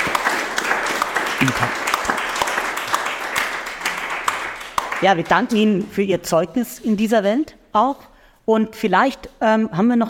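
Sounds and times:
applause: 0.0s - 5.9s
speech: 1.4s - 1.8s, 5.0s - 10.0s.

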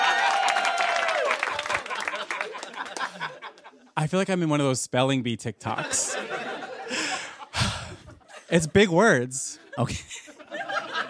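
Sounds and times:
high whoop of cheering: 0.0s - 1.9s
crowd applause: 0.0s - 3.6s
laughter: 1.4s - 4.0s, 5.8s - 8.9s, 9.6s - 11.0s
speech: 4.0s - 6.5s, 8.5s - 10.1s.

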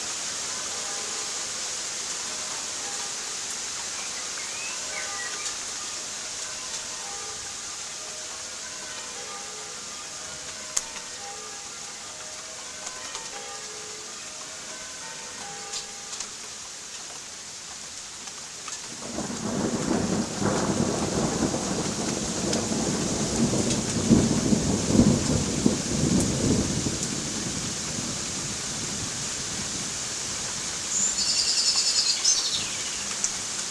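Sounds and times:
church bells ringing: 0.0s - 3.7s, 4.8s - 16.9s
rain: 0.0s - 33.7s
thunder: 19.0s - 29.2s.

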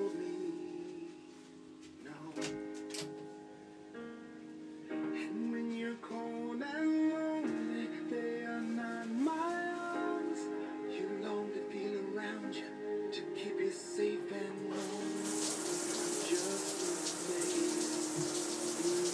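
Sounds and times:
soft music: 0.0s - 19.1s
shower water running over an iPhone: 14.7s - 19.1s.

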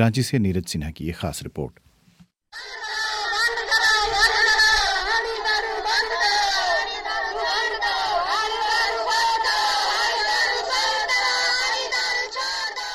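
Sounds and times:
speech: 0.0s - 1.9s
village women chanting slogans against liquor in a procession near Ranchi: 2.6s - 12.9s.

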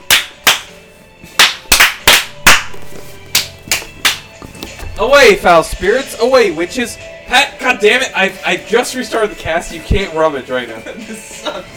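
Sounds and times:
hand clapping: 0.0s - 0.8s, 1.4s - 4.4s
speech: 5.0s - 11.7s.

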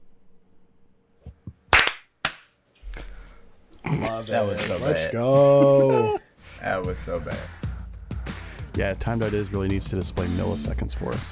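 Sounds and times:
hand claps for audio sync: 1.7s - 2.6s
people talking and laughing: 3.8s - 6.4s
speech: 3.9s - 7.6s, 8.8s - 11.3s.

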